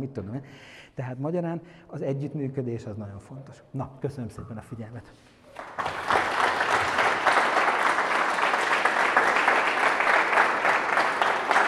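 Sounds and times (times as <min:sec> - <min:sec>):
speech: 0:00.0 - 0:05.7
audience applause after a talk: 0:05.5 - 0:11.6.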